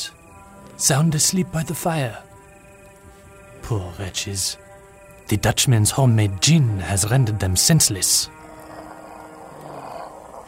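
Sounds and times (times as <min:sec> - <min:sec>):
speech: 0:00.8 - 0:02.3, 0:03.7 - 0:04.6, 0:05.3 - 0:08.4
fishermen's dogs growling: 0:08.3 - 0:10.4.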